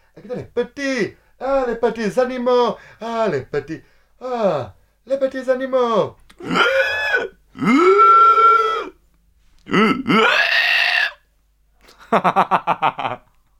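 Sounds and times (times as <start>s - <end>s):
speech: 0.2s - 8.0s, 9.7s - 10.4s, 12.1s - 13.2s
person imitating pig grunts: 6.3s - 8.9s, 9.6s - 11.2s.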